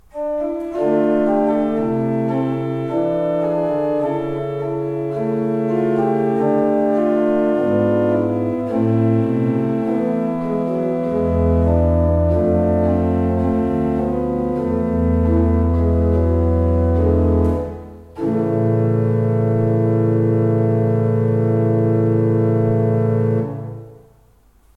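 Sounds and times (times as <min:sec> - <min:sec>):
pipe organ: 0:00.1 - 0:24.0.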